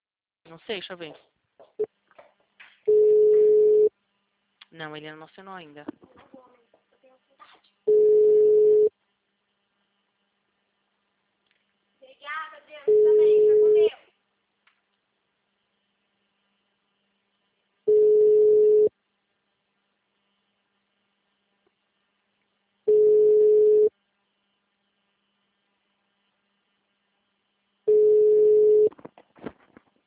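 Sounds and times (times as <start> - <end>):
speech: 0.5 - 1.9, 4.7 - 6.1
telephone ringback tone of an unanswered call: 2.9 - 3.9, 7.9 - 8.9, 12.9 - 13.9, 17.9 - 18.9, 22.9 - 23.9, 27.9 - 28.9.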